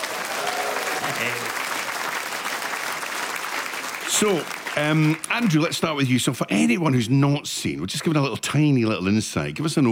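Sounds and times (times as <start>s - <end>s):
audience clapping at the Edinburgh Fringe: 0.0s - 6.4s
speech: 1.2s - 1.6s, 4.2s - 9.9s.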